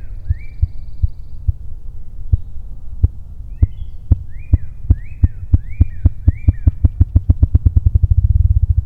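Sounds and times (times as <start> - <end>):
faint bird chirps: 0.0 - 2.7, 3.5 - 7.5
ruffed grouse wing drumming: 4.1 - 8.1.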